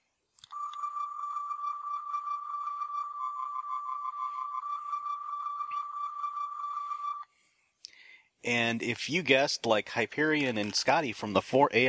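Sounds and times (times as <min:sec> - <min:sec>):
Star Trek tricorder sound effect: 0:00.5 - 0:07.2
speech: 0:08.4 - 0:11.8.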